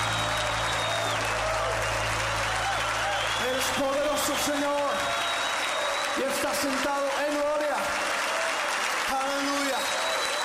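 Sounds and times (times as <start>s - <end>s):
loud applause: 0.0s - 10.4s
speech: 6.2s - 7.7s.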